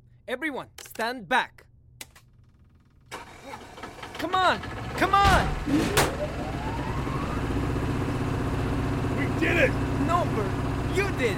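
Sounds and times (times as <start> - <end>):
speech: 0.3 - 1.6, 4.2 - 6.5, 9.4 - 11.3
choked generator engine starting and running: 3.1 - 11.3
whine climbing in pitch: 5.6 - 9.5.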